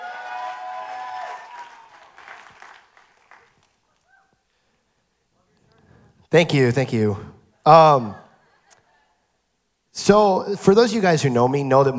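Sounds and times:
audience applause welcoming speaker: 0.0s - 3.8s
speech: 6.3s - 8.2s, 10.0s - 11.9s.

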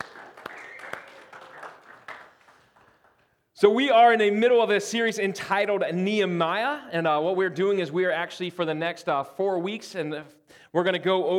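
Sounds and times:
faint voices or cheers: 0.0s - 2.3s
audience applause: 0.0s - 3.3s
speech: 3.6s - 11.3s.

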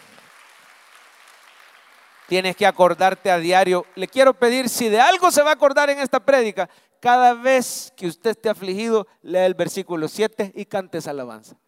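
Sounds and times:
crowd applauding: 0.0s - 4.4s
speech: 2.3s - 11.6s.

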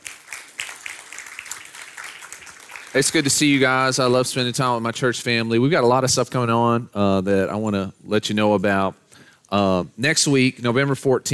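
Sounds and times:
crowd applause: 0.0s - 3.9s
speech: 3.0s - 11.3s.

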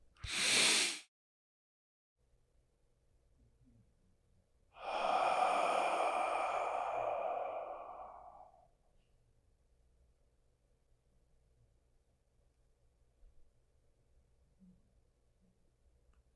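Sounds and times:
person breathing in during a guided heart-focused meditation: 0.2s - 1.0s, 4.8s - 8.7s.

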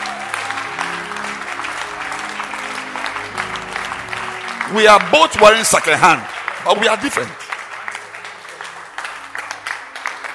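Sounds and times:
audience clapping hands: 0.0s - 10.3s
speech: 4.7s - 7.4s.

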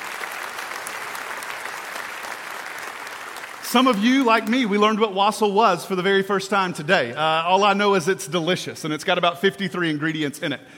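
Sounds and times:
audience applause: 0.0s - 4.9s
speech: 3.7s - 10.7s.

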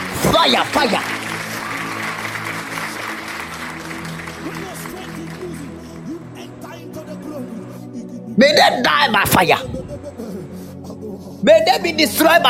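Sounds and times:
people clapping hands: 0.0s - 6.7s
speech: 0.3s - 1.2s, 8.4s - 9.7s, 11.4s - 12.4s.

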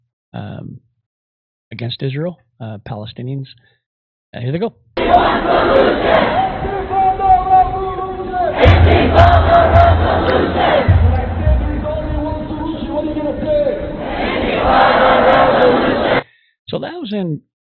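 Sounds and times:
speech: 0.3s - 0.8s, 1.7s - 7.0s, 16.7s - 17.5s
protest crowd shouting chants: 5.0s - 16.2s
low thumping noise: 8.6s - 13.1s.

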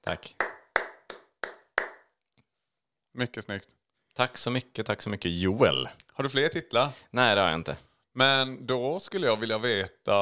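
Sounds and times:
speech: 0.0s - 0.4s, 3.2s - 10.2s
hand claps: 0.2s - 2.2s.

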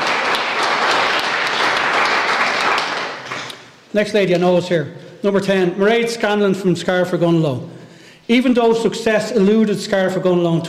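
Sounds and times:
crowd applause: 0.0s - 3.7s
speech: 3.9s - 10.6s.

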